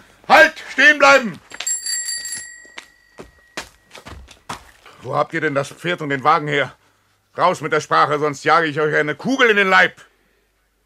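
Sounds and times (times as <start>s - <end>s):
speech: 0.8s - 1.4s, 5.0s - 6.8s, 7.4s - 10.1s
bicycle bell ringing: 1.5s - 3.9s.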